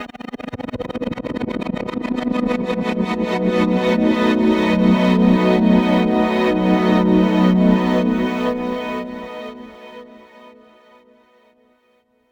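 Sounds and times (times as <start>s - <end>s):
strings: 2.2s - 11.2s.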